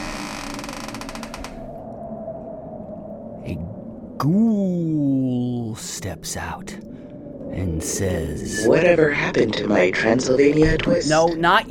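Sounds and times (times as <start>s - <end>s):
crypt door creaking open: 0.0s - 1.7s
speech: 3.4s - 11.6s.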